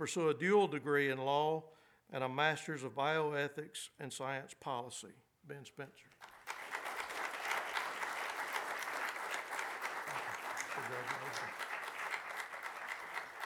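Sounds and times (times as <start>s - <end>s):
speech: 0.0s - 6.3s, 10.9s - 11.6s
audience applause: 6.2s - 13.4s.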